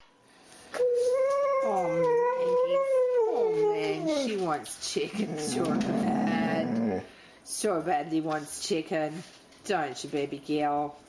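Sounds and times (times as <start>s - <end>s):
Xoloitzcuintli dog whining for food: 0.8s - 4.4s, 5.2s - 7.1s
speech: 4.5s - 11.0s.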